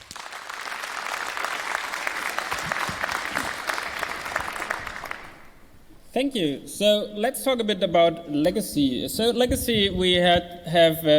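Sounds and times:
audience clapping at a technical conference: 0.0 - 5.7
speech: 6.2 - 11.1.

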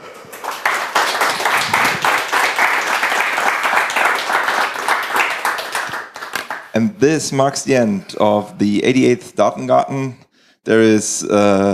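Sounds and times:
audience applause: 0.0 - 6.7
speech: 6.8 - 11.7.

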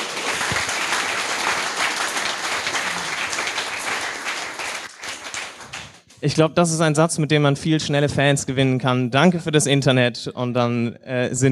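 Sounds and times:
audience applause: 0.0 - 6.1
speech: 6.2 - 11.5.

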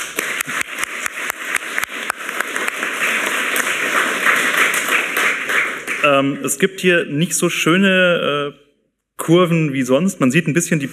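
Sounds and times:
conference audience clapping: 0.0 - 6.3
speech: 6.0 - 8.6, 9.3 - 10.9.

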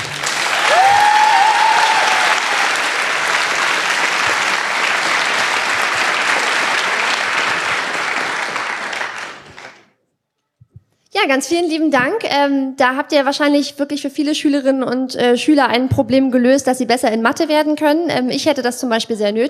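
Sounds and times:
audience applause: 0.0 - 9.9
speech: 11.3 - 19.4.

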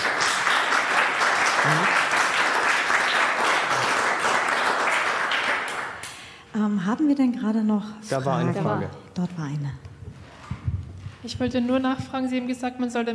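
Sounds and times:
audience applause: 0.0 - 6.3
speech: 7.0 - 9.9, 11.2 - 13.1.

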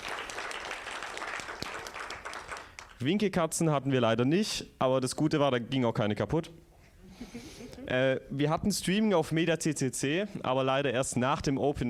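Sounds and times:
applause from an audience at a talk: 0.0 - 3.0
speech: 3.0 - 6.6, 7.2 - 11.8.

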